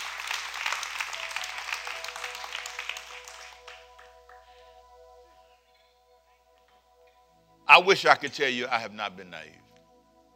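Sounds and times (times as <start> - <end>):
audience hand clapping: 0.0 - 4.6
speech: 7.8 - 9.7.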